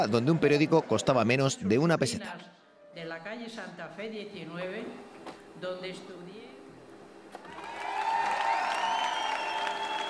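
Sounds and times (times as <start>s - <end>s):
speech: 0.0s - 6.4s
concert audience applause: 7.4s - 10.0s
whistles: 8.2s - 10.0s.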